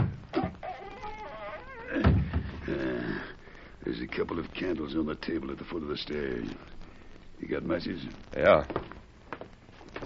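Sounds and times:
trapdoor hinges creaking: 0.0 - 2.8
speech: 4.0 - 6.8, 7.4 - 8.9.

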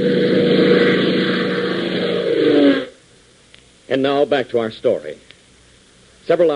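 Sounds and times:
airplane engine droning: 0.0 - 3.1
speech: 3.9 - 5.3, 6.3 - 6.5.

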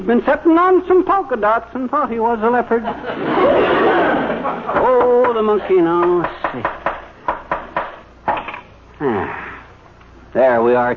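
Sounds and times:
speech: 0.0 - 6.8, 9.0 - 9.4, 10.3 - 10.9
laughter: 2.8 - 5.3
hammering nails into a wooden frame: 6.0 - 8.1.

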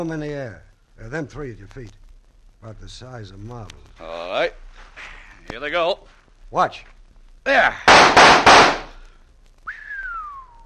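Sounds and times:
speech: 0.0 - 2.0, 2.6 - 4.6, 5.5 - 8.8
gunshots hitting tossed clay pieces: 7.9 - 9.0.

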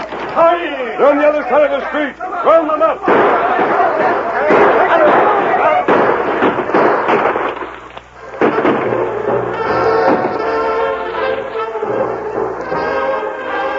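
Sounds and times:
speech: 0.4 - 4.3
gunfire during a shootout: 3.0 - 13.6.

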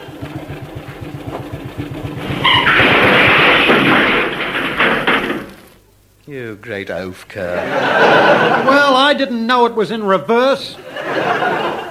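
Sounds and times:
steamroller heavy diesel engine starting and running: 0.0 - 5.7
speech: 6.5 - 11.8
laughter: 7.4 - 9.1, 10.8 - 11.8.

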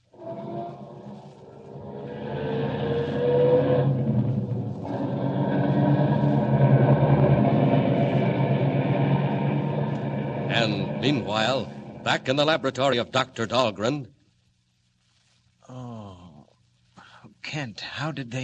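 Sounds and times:
car engine cranking, starting and driving off: 1.7 - 12.7
speech: 11.0 - 14.2, 17.5 - 18.4.

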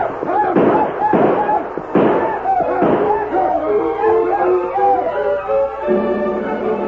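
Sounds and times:
gunshots: 0.0 - 4.0
people yelling: 0.0 - 6.7.

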